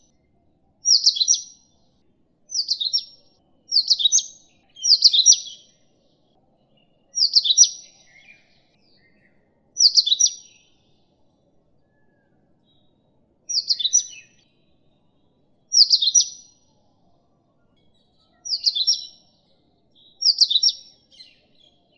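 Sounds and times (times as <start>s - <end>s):
Indian Oriental magpie-robin singing: 0.8s - 1.8s, 2.5s - 5.9s, 6.8s - 10.8s, 13.5s - 14.5s, 15.7s - 16.7s, 18.3s - 19.4s, 20.0s - 21.9s.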